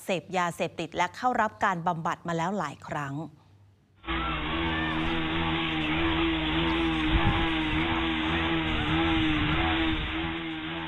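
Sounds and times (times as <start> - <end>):
speech: 0.1 - 3.4
motorcycle engine revving loudly in a school: 4.0 - 10.8.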